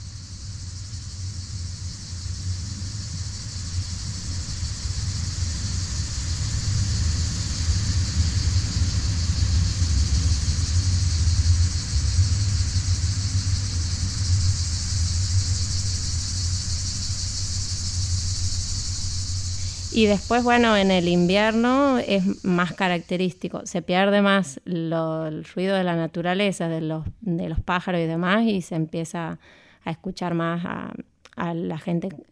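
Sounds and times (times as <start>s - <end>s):
distant vehicle traffic rumble: 0.3s - 23.8s
speech: 20.0s - 32.3s.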